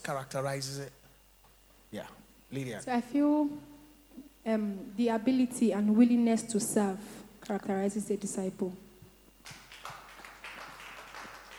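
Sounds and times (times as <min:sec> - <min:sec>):
speech: 0:00.0 - 0:01.0, 0:01.9 - 0:03.7, 0:04.4 - 0:08.8
scattered clapping from a few people: 0:09.4 - 0:11.5.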